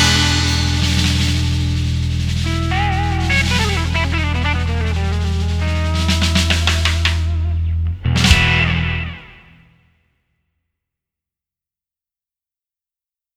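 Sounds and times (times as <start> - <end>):
christmas song drums: 0.0 - 9.6.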